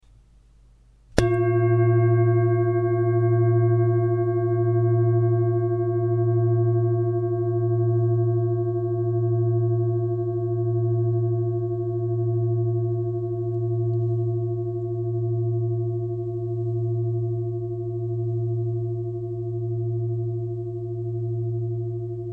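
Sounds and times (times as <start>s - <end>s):
singing bowl: 1.2s - 22.3s.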